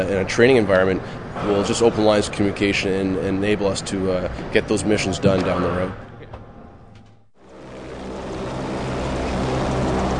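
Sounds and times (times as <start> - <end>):
speech: 0.0 - 6.1
U.S. Jayhawk helicopter lifting off from a ramp and hovering: 7.4 - 10.1.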